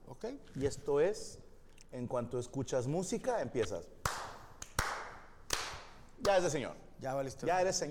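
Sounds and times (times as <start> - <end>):
speech: 0.2 - 4.0, 6.2 - 7.8
hand clapping along to music: 4.0 - 6.5.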